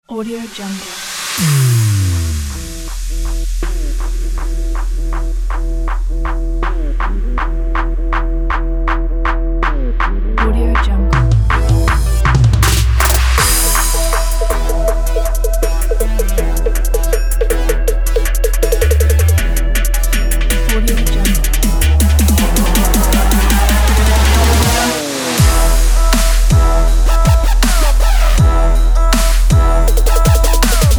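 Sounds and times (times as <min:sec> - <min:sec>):
basic trap beat: 0:01.4 - 0:30.9.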